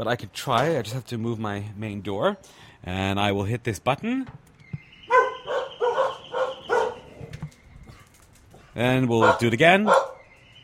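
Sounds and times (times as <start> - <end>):
speech: 0.0 - 4.5, 8.8 - 10.1
dogs barking: 5.0 - 7.3, 9.1 - 10.3.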